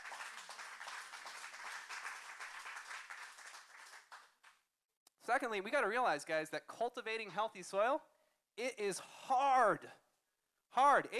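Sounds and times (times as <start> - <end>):
audience round of applause: 0.0 - 4.4
speech: 5.3 - 10.0, 10.7 - 11.1.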